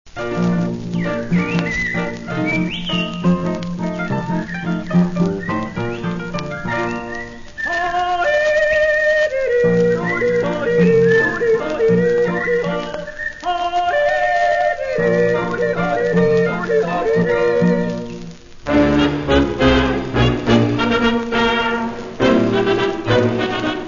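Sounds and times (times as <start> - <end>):
Bavarian waltz music: 0.2 - 13.1, 14.0 - 23.8.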